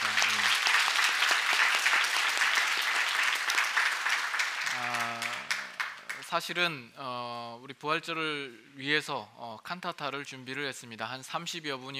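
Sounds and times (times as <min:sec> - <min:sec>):
crowd applauding the choir: 0:00.0 - 0:06.2
speech: 0:06.3 - 0:11.9.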